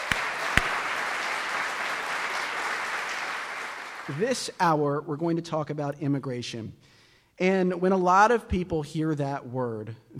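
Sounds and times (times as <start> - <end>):
audience round of applause: 0.0 - 4.2
speech: 4.1 - 10.1.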